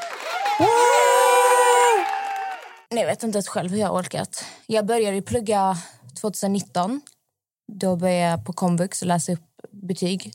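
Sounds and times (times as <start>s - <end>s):
applause sound effect: 0.0s - 2.9s
cheering sound effect: 0.0s - 2.9s
speech: 2.9s - 7.1s, 7.7s - 10.3s.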